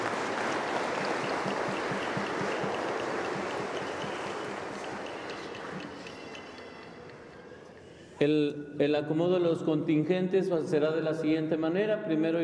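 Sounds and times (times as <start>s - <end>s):
crowd applauding: 0.0s - 7.8s
speech: 8.2s - 12.4s.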